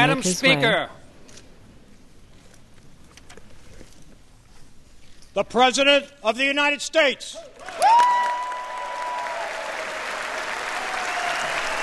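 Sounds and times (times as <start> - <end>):
speech: 0.0 - 1.0, 5.4 - 8.4
applause from members of Congress: 7.6 - 11.8.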